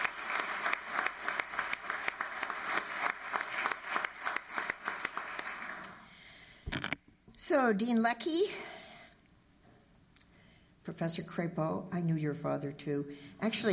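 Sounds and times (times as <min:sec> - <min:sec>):
audience applause: 0:00.0 - 0:06.0
speech: 0:07.5 - 0:08.7, 0:11.0 - 0:13.7.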